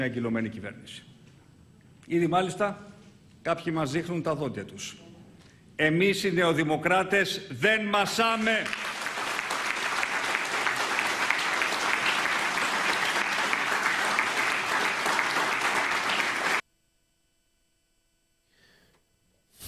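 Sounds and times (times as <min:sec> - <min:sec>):
speech: 0:00.0 - 0:01.1, 0:02.1 - 0:05.1, 0:05.8 - 0:09.0
crowd applause: 0:08.3 - 0:16.6.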